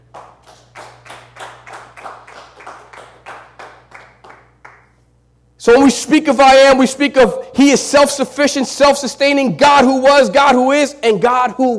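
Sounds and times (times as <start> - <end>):
audience clapping in rhythm: 0.0 - 5.0
low hum: 0.0 - 11.7
speech: 5.6 - 11.7.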